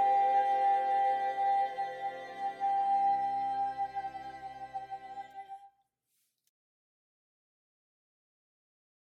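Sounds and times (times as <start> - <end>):
descant melody: 0.0 - 5.7.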